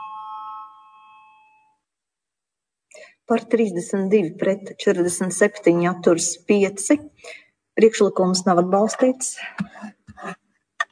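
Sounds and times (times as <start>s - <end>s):
electronic voting bell in the Latvian parliament: 0.0s - 1.8s
speech: 3.3s - 10.4s.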